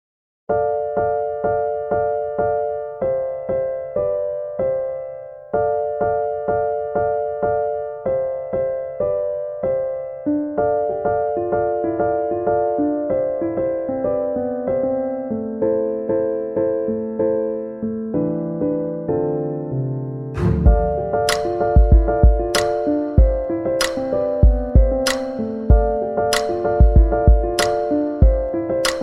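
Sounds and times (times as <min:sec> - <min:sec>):
piano music: 0:00.5 - 0:29.0.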